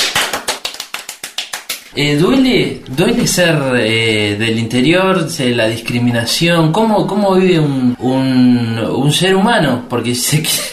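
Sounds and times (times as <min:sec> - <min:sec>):
audience applause: 0:00.0 - 0:01.9
speech: 0:01.9 - 0:10.7.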